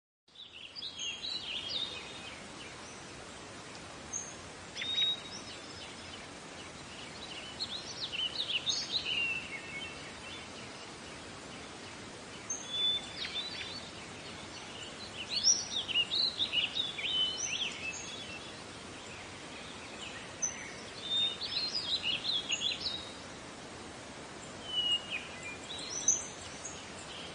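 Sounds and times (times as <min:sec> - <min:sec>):
bird twittering and warbling: 0:00.4 - 0:23.4, 0:24.4 - 0:27.3.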